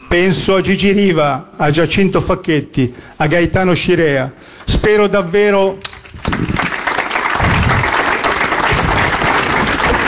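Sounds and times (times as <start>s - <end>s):
speech: 0.1s - 6.5s
spontaneous audience applause: 5.9s - 10.0s.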